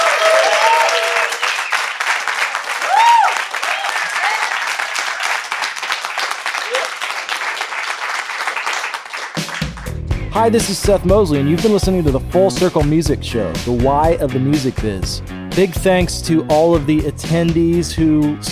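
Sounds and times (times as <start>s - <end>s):
audience applause: 0.0s - 10.0s
speech: 10.4s - 18.5s.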